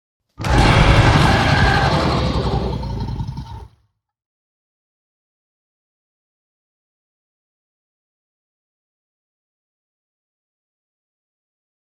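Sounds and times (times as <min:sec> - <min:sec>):
lizard roaring: 0:00.4 - 0:03.8.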